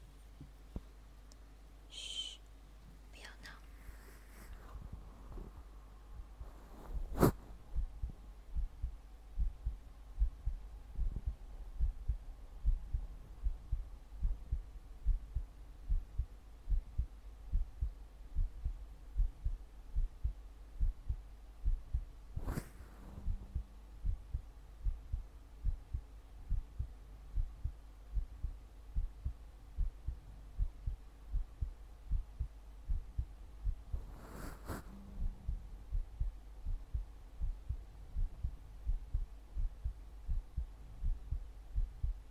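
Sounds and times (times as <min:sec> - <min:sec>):
faint hum: 0:00.0 - 0:42.3
heartbeat through a stethoscope: 0:04.7 - 0:42.3
rustling scrape: 0:06.4 - 0:07.7, 0:22.4 - 0:23.2, 0:34.0 - 0:35.1.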